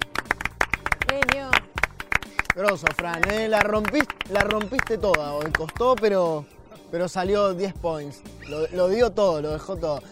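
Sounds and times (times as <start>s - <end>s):
applause for the chef: 0.0s - 6.1s
speech: 2.6s - 10.0s.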